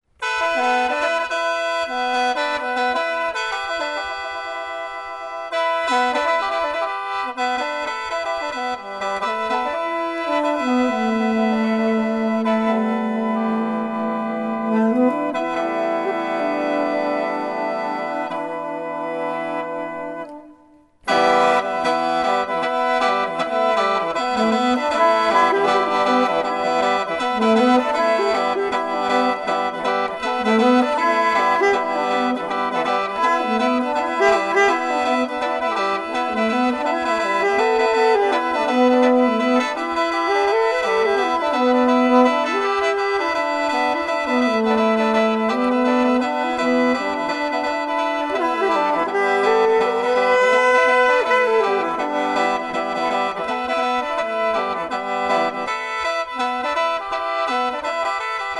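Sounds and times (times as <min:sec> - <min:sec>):
saxophone: 0:00.1 - 0:58.5.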